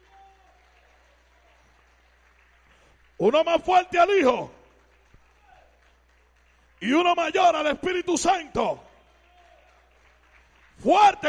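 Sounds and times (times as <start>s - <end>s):
audience applauding: 0.0s - 11.2s
speech: 3.2s - 4.6s, 6.8s - 8.8s, 10.8s - 11.2s.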